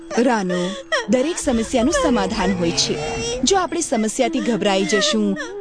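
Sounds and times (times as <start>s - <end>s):
speech: 0.2s - 5.5s
person crying loudly: 1.4s - 3.6s.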